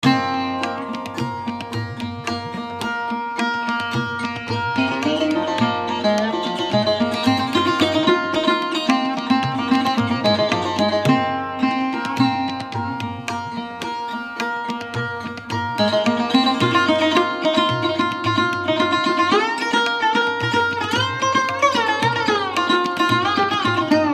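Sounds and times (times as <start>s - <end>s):
Raga Megh in Jhaptal rhythm cycle: 0.0s - 24.1s.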